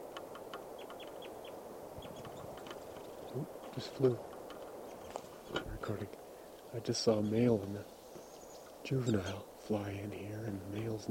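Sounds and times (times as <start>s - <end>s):
bird calling: 0.0s - 11.0s
speech: 3.4s - 4.3s, 5.9s - 8.0s, 8.8s - 11.0s.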